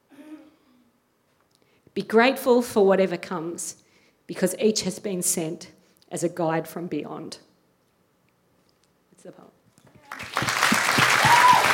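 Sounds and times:
speech: 0:02.0 - 0:07.5, 0:09.2 - 0:09.6
audience applause after a poem reading: 0:10.0 - 0:11.7.

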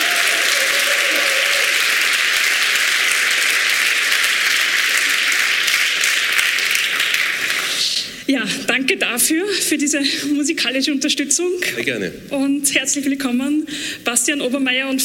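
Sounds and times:
audience clapping: 0:00.0 - 0:08.2
speech: 0:08.3 - 0:15.0.

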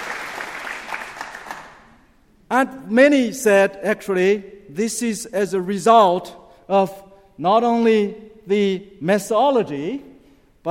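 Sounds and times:
audience clapping hands: 0:00.0 - 0:02.0
speech: 0:02.5 - 0:10.6.

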